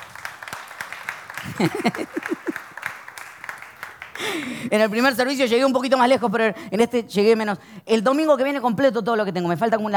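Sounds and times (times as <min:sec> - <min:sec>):
audience applause: 0:00.0 - 0:04.7
laughter: 0:01.3 - 0:02.8
speech: 0:01.6 - 0:02.6, 0:04.2 - 0:09.9.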